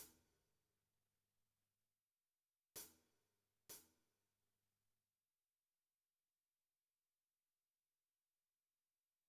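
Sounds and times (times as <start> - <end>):
drums: 2.8 - 3.0.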